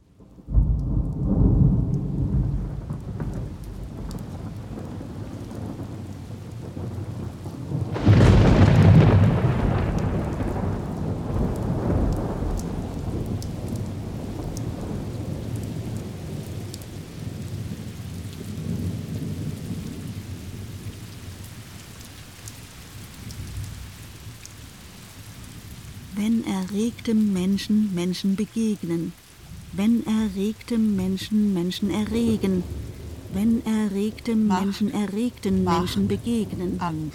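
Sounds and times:
rain: 0.0 - 37.1
thunder: 0.2 - 21.6, 31.8 - 35.0
speech: 26.6 - 29.2, 29.8 - 37.1.

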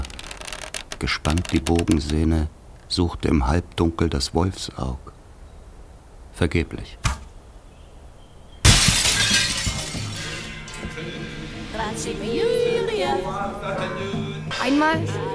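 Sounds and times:
speech: 1.0 - 5.1, 6.4 - 7.0, 11.8 - 15.3
hallway mirror glass shattering: 8.4 - 13.0.

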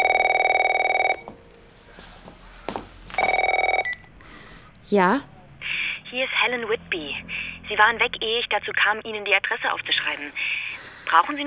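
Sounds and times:
telephone ringing with electronic trill: 0.0 - 1.3, 3.2 - 4.1
speech: 4.9 - 5.3, 6.1 - 11.4.

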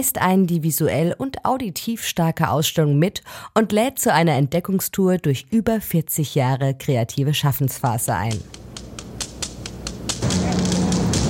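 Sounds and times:
speech: 0.0 - 8.6
hammering and knocking from a video artwork: 8.5 - 11.2.

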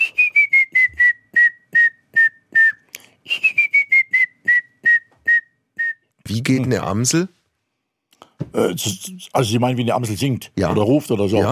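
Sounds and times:
person whistling an imitation of a grey-headed woodpecker call: 0.0 - 6.1
speech: 6.4 - 7.4, 8.6 - 11.4.

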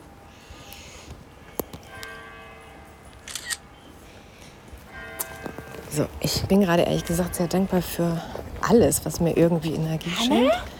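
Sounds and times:
quiet hum: 0.0 - 10.7
faint camera shutter clicks while taking a photo: 3.2 - 3.6
speech: 6.0 - 10.7.

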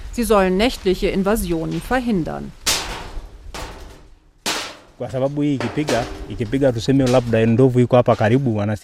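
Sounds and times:
speech: 0.2 - 2.6, 5.0 - 8.8
loose metal sheets clanking in a tree: 1.6 - 8.0.

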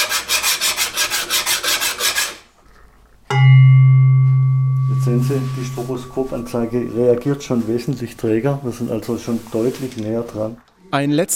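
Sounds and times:
round file rasping material from the middle of a tuning bar: 0.0 - 2.4
struck tuning bar ringing with a low steady pitch: 3.3 - 8.5
speech: 5.0 - 11.3.

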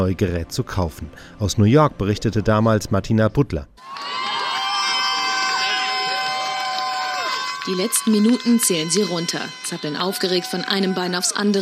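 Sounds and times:
speech: 0.0 - 4.0, 7.6 - 11.6
large crowd cheering and whooping outdoors outside store: 3.8 - 11.6.

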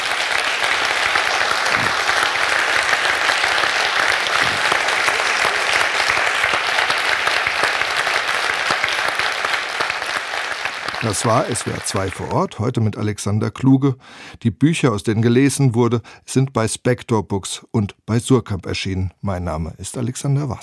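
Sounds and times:
audience applause: 0.0 - 12.5
speech: 11.1 - 20.6.

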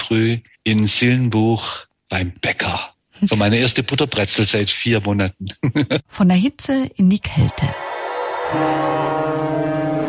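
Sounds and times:
speech: 0.1 - 7.9, 8.5 - 10.0
laughter: 5.5 - 6.1
ship horn of a polar research vessel blaring: 8.5 - 10.0.

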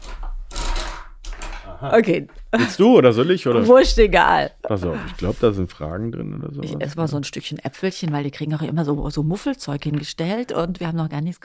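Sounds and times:
coin-operated gumball machine crank being turned: 0.0 - 1.7
speech: 1.8 - 11.4
laughter: 2.6 - 3.9, 4.7 - 7.0.

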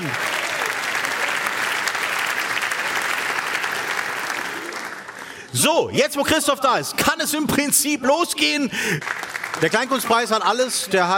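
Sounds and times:
audience applause welcoming a jury member at a Kleinkunstpreis cabaret award event: 0.0 - 5.4, 8.8 - 10.7
speech: 5.5 - 11.1.

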